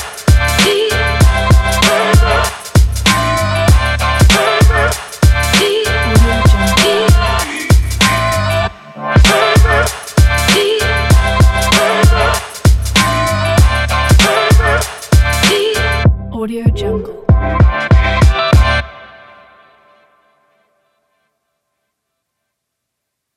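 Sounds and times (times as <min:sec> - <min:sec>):
hip hop drum kit: 0:00.0 - 0:08.6, 0:09.2 - 0:16.1, 0:17.3 - 0:18.8.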